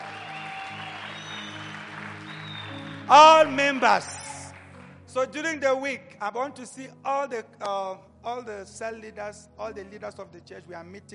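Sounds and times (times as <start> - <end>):
audience clapping hands: 0.0 - 4.9
speech: 3.1 - 4.2, 5.2 - 11.1.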